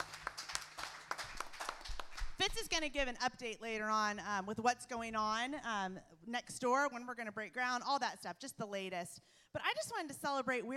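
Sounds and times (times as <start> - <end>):
audience clapping: 0.0 - 2.8
speech: 2.4 - 10.7.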